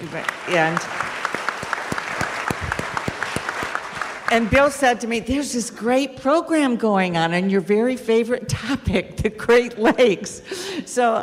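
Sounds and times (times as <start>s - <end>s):
crowd applause: 0.0s - 5.1s
speech: 0.1s - 1.0s, 4.3s - 11.2s.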